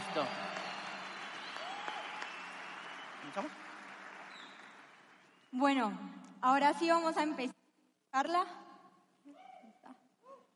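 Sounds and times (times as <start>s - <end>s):
audience applause: 0.0s - 5.5s
speech: 0.2s - 0.5s, 3.3s - 3.7s, 5.5s - 8.6s.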